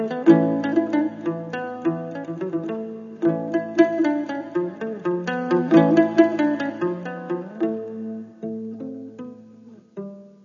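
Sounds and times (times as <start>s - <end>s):
Hutsul melodies: 0.1s - 8.3s.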